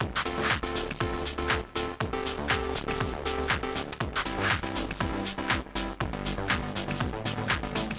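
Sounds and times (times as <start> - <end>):
tv show music: 0.0 - 7.9.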